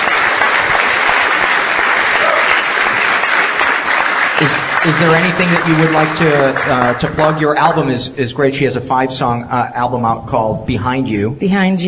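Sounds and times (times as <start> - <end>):
audience applause: 0.0 - 8.1
speech: 4.4 - 11.8.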